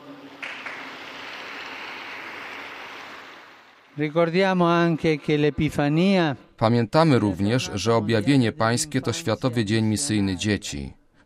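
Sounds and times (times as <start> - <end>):
large crowd applause: 0.0 - 6.0
speech: 4.0 - 11.0.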